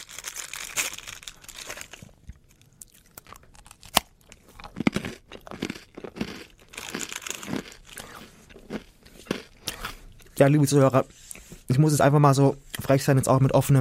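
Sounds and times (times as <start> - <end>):
crunchy hard rusk Zwieback WWI trench ration being bitten and chewed: 0.0 - 10.4
speech: 10.4 - 11.2, 11.8 - 13.7.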